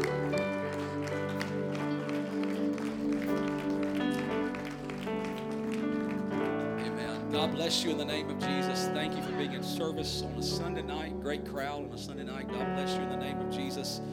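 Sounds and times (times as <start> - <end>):
crowd clapping hands: 0.0 - 9.5
sustained keyboard chords: 0.0 - 14.1
speech: 7.4 - 14.1.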